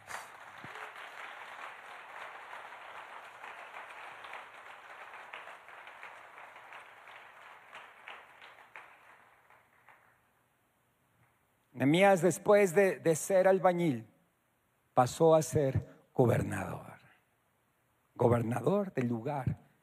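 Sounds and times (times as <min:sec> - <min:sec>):
audience ovation applause: 0:00.0 - 0:10.2
speech: 0:11.8 - 0:14.1, 0:15.0 - 0:16.9, 0:18.2 - 0:19.6.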